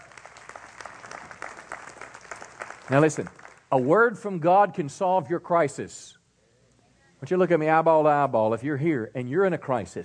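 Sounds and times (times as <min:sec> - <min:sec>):
audience applauding: 0:00.0 - 0:03.7
speech: 0:02.9 - 0:06.2, 0:07.2 - 0:10.0.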